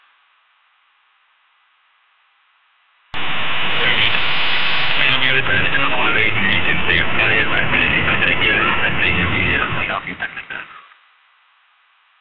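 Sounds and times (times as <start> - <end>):
radio broadcasting intro: 3.2 - 10.7.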